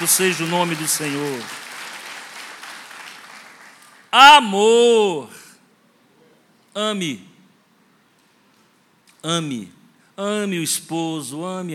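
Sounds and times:
speech: 0.0s - 1.7s, 4.1s - 5.4s, 6.8s - 7.3s, 9.2s - 11.7s
crowd clapping: 0.0s - 4.1s.

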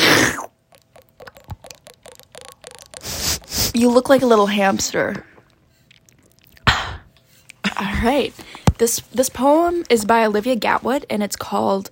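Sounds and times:
person drinking water: 0.0s - 7.8s
speech: 3.8s - 5.3s, 8.0s - 11.9s.

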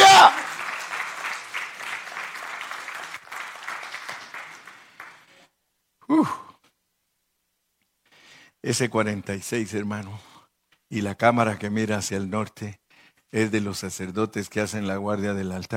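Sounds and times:
audience applauding: 0.0s - 5.5s
speech: 6.1s - 6.4s, 8.6s - 10.3s, 10.9s - 15.7s.

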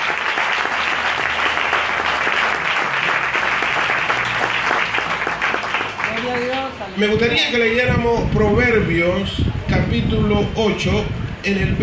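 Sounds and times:
audience applause: 0.0s - 6.8s
speech: 7.0s - 11.8s.

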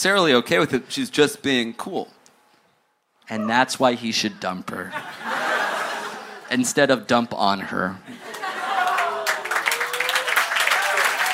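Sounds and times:
speech: 0.0s - 2.2s, 3.3s - 5.3s, 6.5s - 8.3s
laughter: 4.9s - 6.6s, 8.1s - 9.7s
audience clapping: 8.2s - 11.3s.

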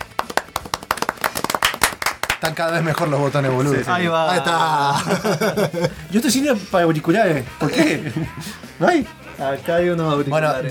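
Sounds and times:
small group clapping: 0.0s - 3.6s
speech: 2.4s - 10.6s
laughter: 3.1s - 8.8s.

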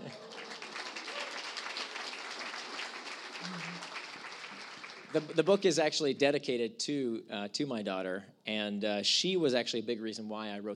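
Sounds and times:
audience applause: 0.0s - 5.6s
speech: 5.1s - 10.7s.

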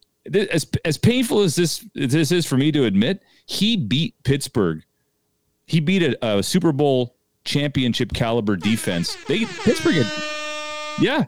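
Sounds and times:
speech: 0.2s - 4.9s, 5.7s - 10.3s, 11.0s - 11.2s
air horn sound effect: 8.6s - 11.2s.

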